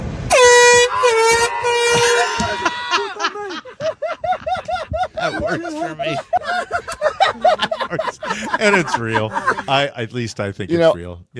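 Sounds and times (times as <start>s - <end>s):
truck air horn blast: 0.3s - 2.8s
laughter: 2.4s - 9.8s
speech: 8.6s - 11.3s.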